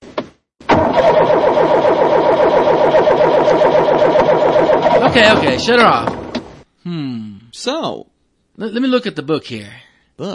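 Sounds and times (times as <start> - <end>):
car engine cranking and idling: 0.6 - 6.6
speech: 5.2 - 6.2, 6.8 - 10.3.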